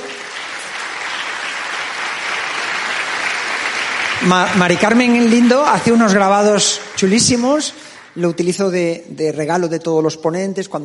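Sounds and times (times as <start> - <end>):
audience applause: 0.0 - 8.6
speech: 4.2 - 10.8.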